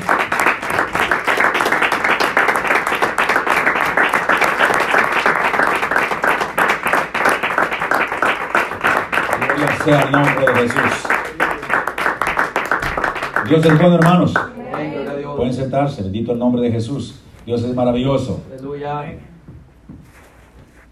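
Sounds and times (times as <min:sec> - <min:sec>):
applause: 0:00.0 - 0:15.2
speech: 0:09.8 - 0:11.2, 0:13.5 - 0:14.5, 0:15.4 - 0:19.3.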